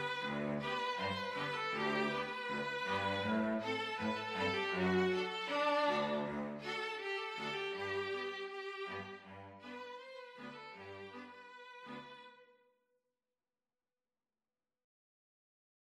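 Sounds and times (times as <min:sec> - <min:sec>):
string quartet playing Indian music: 0:00.0 - 0:12.4.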